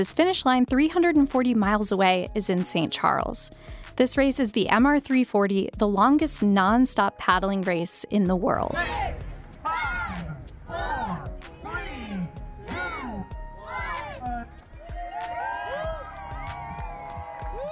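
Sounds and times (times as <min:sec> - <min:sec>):
speech: 0:00.0 - 0:09.2
raucous crowd whooping and shouting at the start of the MR340 paddling race: 0:08.8 - 0:17.7.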